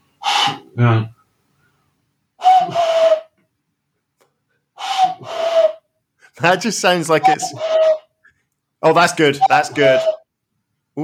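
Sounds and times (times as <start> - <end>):
person imitating a cuckoo in a higher voice: 0.2 - 0.8, 2.4 - 3.4, 4.8 - 5.9, 7.2 - 8.2, 9.2 - 10.3
speech: 0.8 - 1.2, 6.4 - 8.0, 8.8 - 10.2.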